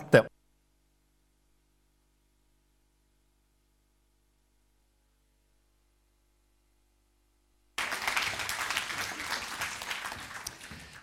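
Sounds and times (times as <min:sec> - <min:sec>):
speech: 0:00.1 - 0:00.3
hesitant applause from audience: 0:07.8 - 0:11.0.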